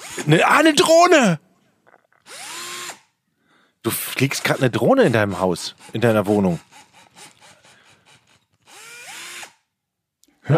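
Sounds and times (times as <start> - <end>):
cordless drill running: 0.0 - 0.4, 2.2 - 3.2, 3.9 - 9.7
speech: 0.2 - 1.4, 3.8 - 6.7.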